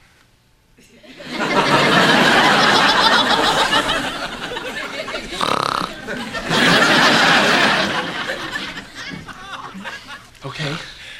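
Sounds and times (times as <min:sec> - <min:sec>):
laughter: 0:00.8 - 0:10.8
recording of a person snoring: 0:05.4 - 0:06.0.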